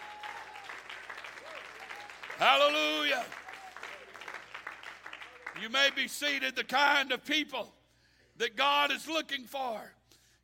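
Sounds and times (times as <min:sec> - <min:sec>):
audience clapping hands: 0:00.0 - 0:06.4
speech: 0:02.4 - 0:03.4, 0:05.6 - 0:07.8, 0:08.4 - 0:10.0.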